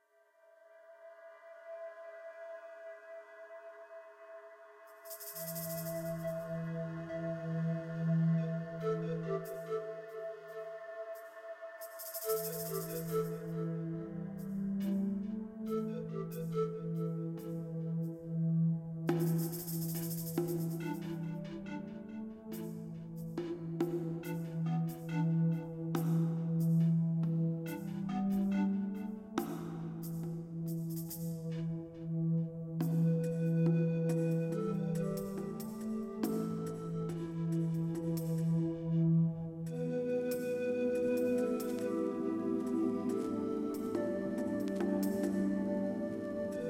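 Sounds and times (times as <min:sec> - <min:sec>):
ambient music: 0:00.0 - 0:46.6.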